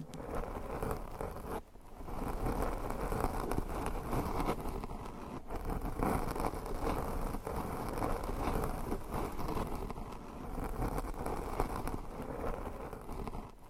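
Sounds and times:
nails scratching over microphones and their covers: 0.0 - 13.6.

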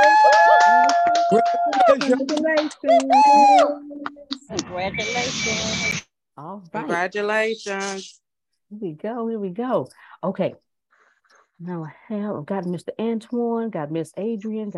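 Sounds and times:
round of applause: 0.0 - 3.7
speech: 1.3 - 10.6, 11.6 - 14.7.

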